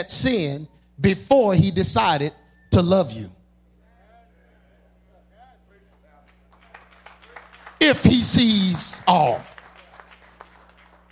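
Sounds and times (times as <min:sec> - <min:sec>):
speech: 0:00.0 - 0:03.4, 0:07.8 - 0:09.5
low electrical hum: 0:00.0 - 0:11.1
audience hand clapping: 0:05.9 - 0:11.1.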